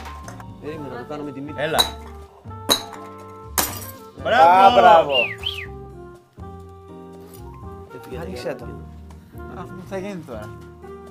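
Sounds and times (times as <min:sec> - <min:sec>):
speech: 0:00.6 - 0:02.1, 0:04.2 - 0:05.5, 0:08.1 - 0:08.9, 0:09.5 - 0:10.7
hammer blows on hard object: 0:01.7 - 0:03.9.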